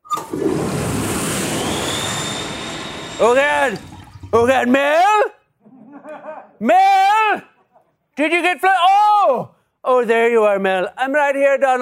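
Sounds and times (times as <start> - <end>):
Super Flusher toilet flushing: 0.0 - 5.2
speech: 3.2 - 5.4, 6.6 - 7.5, 8.2 - 11.8
laughter: 5.6 - 6.7.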